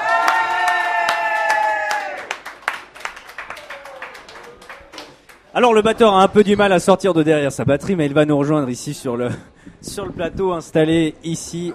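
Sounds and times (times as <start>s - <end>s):
audience applauding and cheering: 0.0s - 5.5s
speech: 5.6s - 11.7s.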